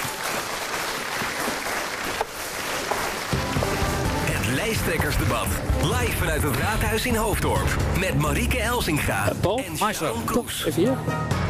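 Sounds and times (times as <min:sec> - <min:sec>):
audience applause: 0:00.0 - 0:06.3
speech: 0:04.8 - 0:11.4.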